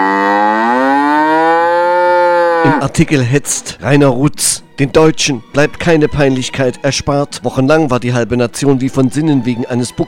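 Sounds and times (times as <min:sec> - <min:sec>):
cow mooing: 0:00.0 - 0:02.9
speech: 0:02.7 - 0:10.0.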